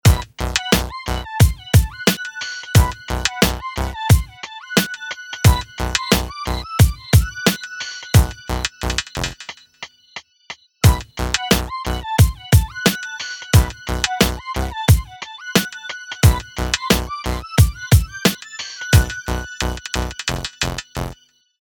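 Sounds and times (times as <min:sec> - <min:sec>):
ruins music loop: 0:00.0 - 0:10.0, 0:10.8 - 0:21.2.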